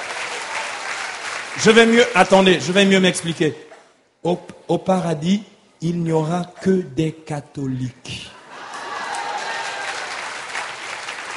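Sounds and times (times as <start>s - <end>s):
audience applause: 0.0s - 3.5s, 8.5s - 11.3s
speech: 1.6s - 8.3s.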